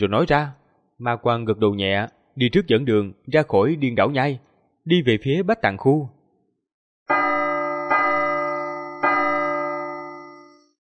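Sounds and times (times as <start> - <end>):
speech: 0.0 - 6.2
deep majestic bell tolling from afar: 7.1 - 10.6.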